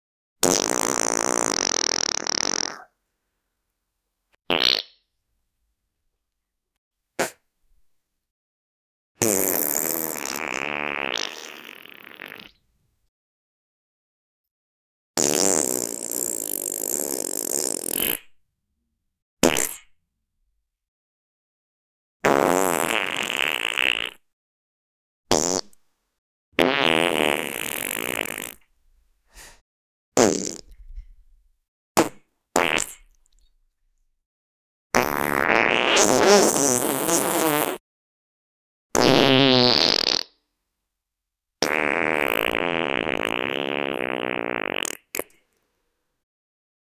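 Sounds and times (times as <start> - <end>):
person farting: 0.4 - 2.9, 4.5 - 5.0, 7.2 - 7.4, 9.2 - 12.6, 15.2 - 18.4, 19.4 - 19.9, 22.2 - 24.3, 25.3 - 25.8, 26.6 - 28.7, 30.2 - 31.3, 32.0 - 33.2, 34.9 - 37.8, 38.9 - 40.3, 41.6 - 45.4.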